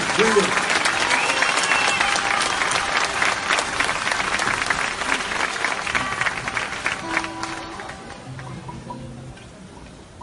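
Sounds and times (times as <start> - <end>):
audience applause: 0.0 - 8.9
speech: 0.2 - 0.7
voices cheering: 0.3 - 3.3.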